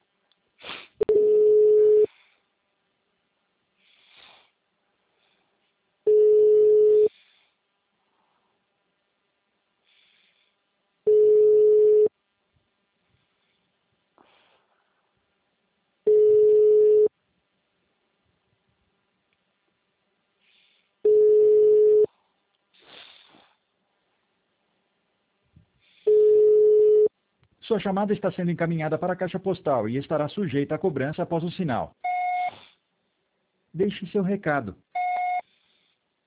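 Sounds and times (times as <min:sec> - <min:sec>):
ringback tone of an outgoing phone call: 0:01.1 - 0:02.1, 0:06.1 - 0:07.1, 0:11.1 - 0:12.1, 0:16.1 - 0:17.1, 0:21.1 - 0:22.1, 0:26.1 - 0:27.1
speech: 0:27.7 - 0:32.1, 0:33.8 - 0:34.9.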